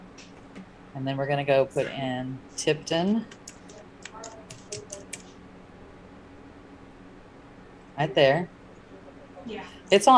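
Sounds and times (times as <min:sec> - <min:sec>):
speech: 0:01.0 - 0:03.4, 0:08.0 - 0:08.6, 0:09.4 - 0:10.1
typing on a computer keyboard: 0:03.2 - 0:05.4.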